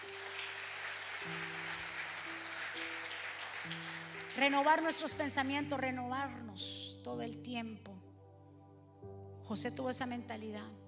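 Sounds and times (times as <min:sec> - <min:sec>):
crowd applause: 0:00.0 - 0:04.6
speech: 0:03.6 - 0:08.0, 0:09.5 - 0:10.8.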